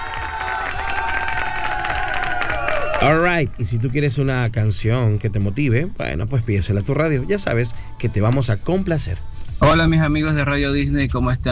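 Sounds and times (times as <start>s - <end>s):
crowd cheering: 0.0s - 3.6s
crowd clapping: 0.0s - 4.1s
speech: 3.0s - 11.4s.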